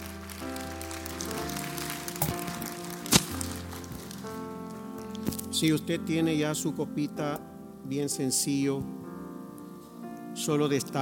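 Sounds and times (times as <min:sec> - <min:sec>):
audience applauding: 0:00.0 - 0:04.4
sustained keyboard chords: 0:00.0 - 0:10.9
speech: 0:05.6 - 0:09.1, 0:10.4 - 0:10.9.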